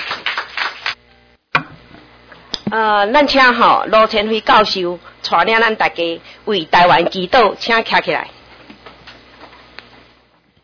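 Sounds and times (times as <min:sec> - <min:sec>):
audience applause: 0:00.0 - 0:01.0
speech: 0:02.7 - 0:08.4.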